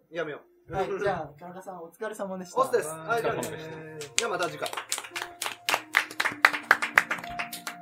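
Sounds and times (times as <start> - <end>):
speech: 0.1 - 4.9
hand claps: 3.4 - 7.8.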